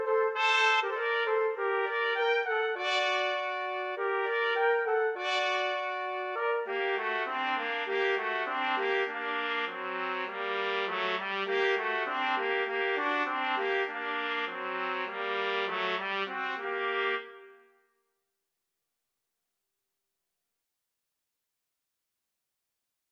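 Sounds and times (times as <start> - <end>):
trumpet trio karaoke track: 0.0 - 17.6.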